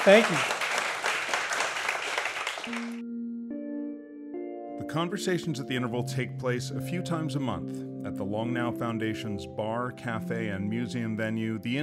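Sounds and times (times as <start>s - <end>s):
speech: 0.0s - 0.5s, 2.7s - 3.2s, 4.9s - 11.8s
audience applause: 0.0s - 3.0s
sustained musical tones: 2.7s - 11.8s.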